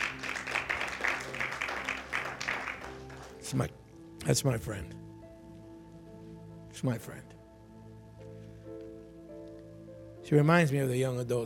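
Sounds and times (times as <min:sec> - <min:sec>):
audience applause: 0:00.0 - 0:03.4
speech: 0:03.5 - 0:05.0, 0:06.8 - 0:07.4, 0:10.3 - 0:11.4.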